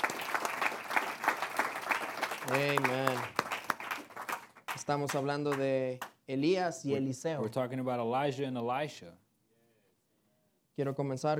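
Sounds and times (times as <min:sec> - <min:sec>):
audience clapping applause: 0:00.0 - 0:05.7
speech: 0:02.5 - 0:03.4, 0:04.8 - 0:09.2, 0:10.8 - 0:11.3.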